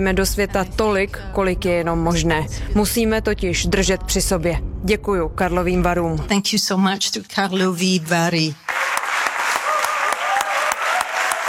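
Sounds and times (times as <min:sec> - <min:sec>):
speech: 0:00.0 - 0:08.7
large audience applause at festival ceremony in a hall: 0:08.6 - 0:11.4
faint whistles or cheers: 0:09.5 - 0:11.4.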